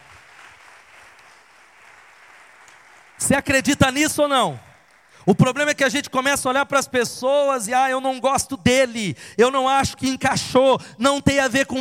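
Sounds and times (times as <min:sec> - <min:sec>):
audience applause: 0:00.0 - 0:03.6
speech: 0:03.2 - 0:11.8.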